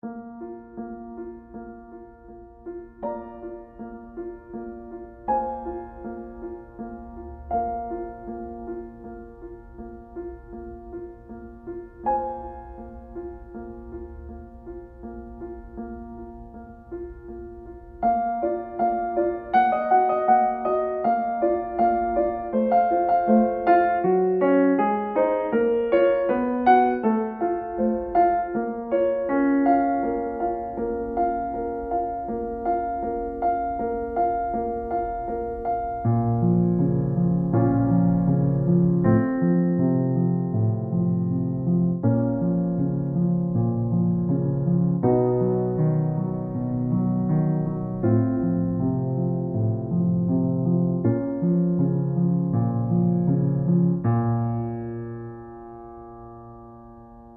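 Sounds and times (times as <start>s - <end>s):
piano: 0.0s - 57.3s.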